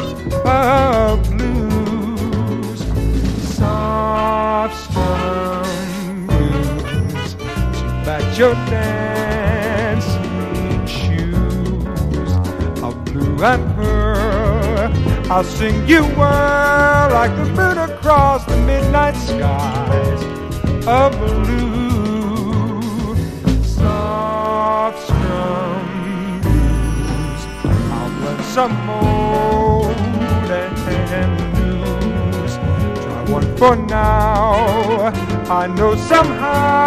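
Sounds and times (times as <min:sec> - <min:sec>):
soft blues guitar strumming: 0:00.0 - 0:36.8.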